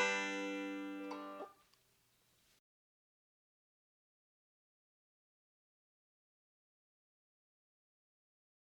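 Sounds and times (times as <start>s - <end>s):
rolls for melody on fourth string: 0.0s - 1.5s.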